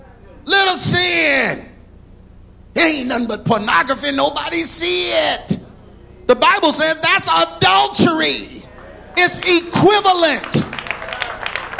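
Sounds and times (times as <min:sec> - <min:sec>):
speech: 0:00.7 - 0:01.7, 0:02.8 - 0:05.6, 0:06.3 - 0:08.5, 0:09.2 - 0:10.7
audience hand clapping: 0:08.7 - 0:11.7.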